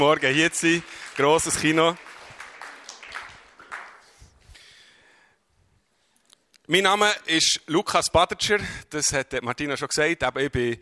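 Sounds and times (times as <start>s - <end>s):
speech: 0.0s - 2.1s, 6.7s - 10.8s
audience applause: 0.0s - 4.4s.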